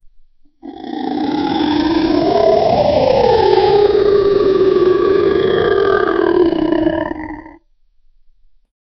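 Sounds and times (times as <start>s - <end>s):
cute but powerful cartoon dinosaur sound: 0.6s - 7.6s.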